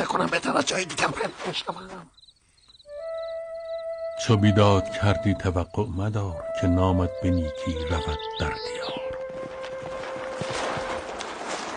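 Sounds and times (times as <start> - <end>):
speech: 0.0 - 2.2, 4.2 - 9.1
governor's horse hooves clip-clopping: 8.6 - 11.7.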